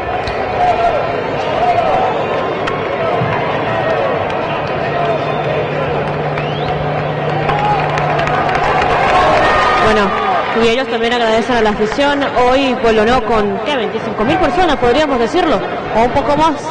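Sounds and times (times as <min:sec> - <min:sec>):
stadium crowd applauding the team: 0:00.0 - 0:12.2
speech: 0:10.6 - 0:16.6.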